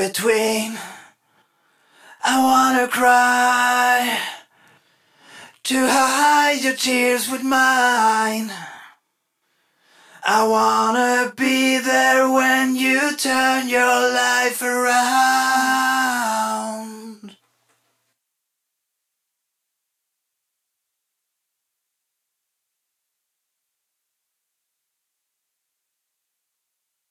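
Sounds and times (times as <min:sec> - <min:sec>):
main vocals: 0:00.0 - 0:01.1, 0:02.1 - 0:04.5, 0:05.5 - 0:08.9, 0:10.2 - 0:17.4.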